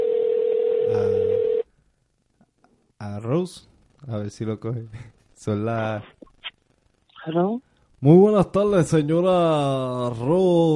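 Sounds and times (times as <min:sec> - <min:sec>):
electronic tone of a telephone call dialed on speakerphone: 0:00.0 - 0:01.6
speech: 0:03.2 - 0:06.2, 0:07.2 - 0:10.7.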